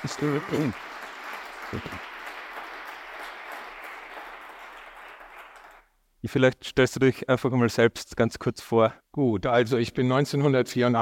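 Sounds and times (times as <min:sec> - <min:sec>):
speech: 0:00.0 - 0:00.9, 0:01.7 - 0:02.1, 0:06.2 - 0:11.0
audience applause: 0:00.0 - 0:05.9.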